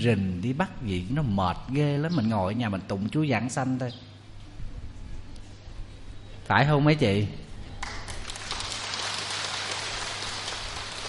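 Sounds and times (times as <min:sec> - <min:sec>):
speech: 0:00.0 - 0:04.1, 0:06.5 - 0:07.4
audience applauding: 0:07.8 - 0:11.0.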